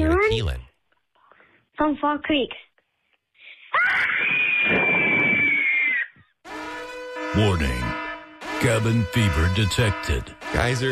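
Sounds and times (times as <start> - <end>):
speech: 0.3 - 0.7, 1.8 - 2.7, 7.4 - 7.9, 8.6 - 10.9
child's cabin fever scream: 3.7 - 6.3.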